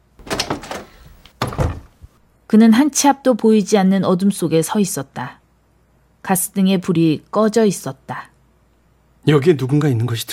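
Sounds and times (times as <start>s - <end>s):
door opening and shutting: 0.2s - 2.1s
speech: 2.5s - 5.4s, 6.2s - 8.3s, 9.2s - 10.3s.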